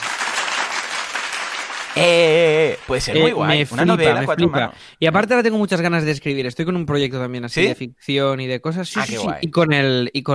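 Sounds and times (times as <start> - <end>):
applause: 0.0 - 3.2
speech: 2.0 - 10.3.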